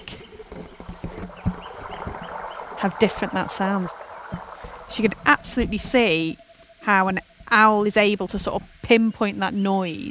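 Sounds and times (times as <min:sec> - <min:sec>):
brief low knocks: 0:00.5 - 0:06.3
babbling brook: 0:01.2 - 0:08.7
speech: 0:02.8 - 0:04.0, 0:04.9 - 0:10.1.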